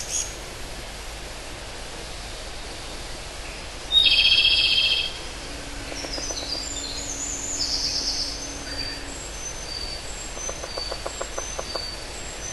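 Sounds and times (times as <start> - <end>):
pygmy woodpecker giving a harsh, buzzy call: 4.0 - 12.0.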